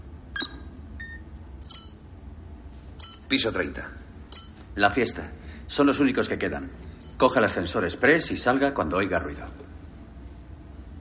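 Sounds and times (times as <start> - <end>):
low steady hum: 0.0 - 10.9
short high electronic beeps from touchscreen directory keys: 0.4 - 2.1, 3.0 - 3.3, 4.3 - 4.7
speech: 3.3 - 4.0, 4.8 - 9.7.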